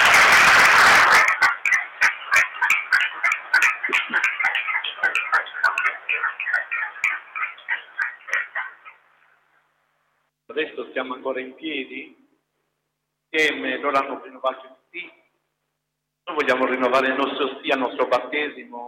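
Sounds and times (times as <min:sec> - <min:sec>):
audience applause turning into rhythmic clapping: 0:00.0 - 0:06.1
speech: 0:10.7 - 0:12.2, 0:13.3 - 0:15.2, 0:16.3 - 0:18.8.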